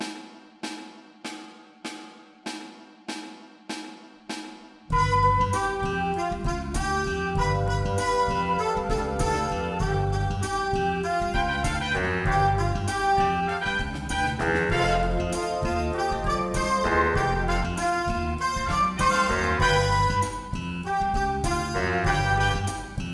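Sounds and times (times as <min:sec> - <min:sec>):
recorder: 0:04.9 - 0:23.1.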